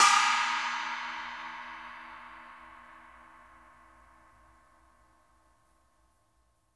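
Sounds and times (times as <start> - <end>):
cymbal crash: 0.0 - 3.2.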